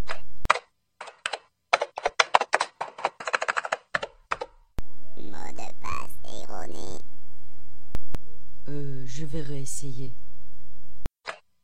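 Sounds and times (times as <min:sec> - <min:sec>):
computer keyboard typing a password: 0:00.1 - 0:04.6
speech: 0:09.3 - 0:10.2.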